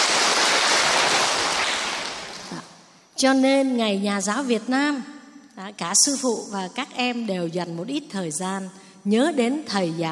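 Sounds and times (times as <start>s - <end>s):
round of applause: 0.0s - 2.7s
speech: 3.2s - 10.1s.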